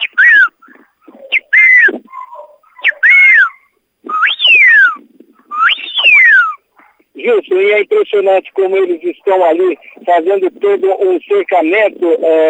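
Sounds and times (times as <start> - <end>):
whistle commands for herding dogs: 0.0 - 6.6
speech: 7.2 - 12.4.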